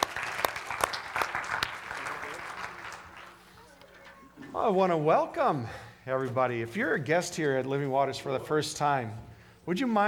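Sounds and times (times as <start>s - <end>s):
church congregation applauding after a worship team's song: 0.0s - 3.7s
speech: 4.6s - 10.0s.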